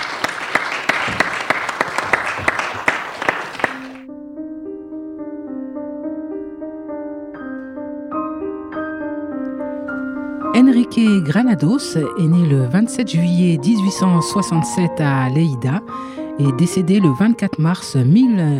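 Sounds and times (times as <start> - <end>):
audience applause: 0.0 - 4.1
speech: 10.6 - 18.5.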